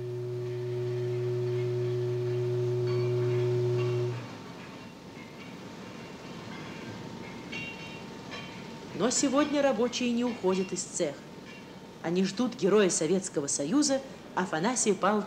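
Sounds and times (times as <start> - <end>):
long factory whistle announcing lunch break: 0.0 - 4.5
speech: 9.0 - 11.4, 12.0 - 15.2.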